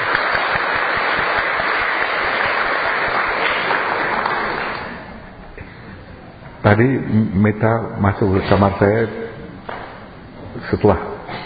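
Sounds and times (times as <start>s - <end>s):
applause: 0.0s - 5.1s
speech: 6.7s - 9.2s, 10.7s - 11.1s.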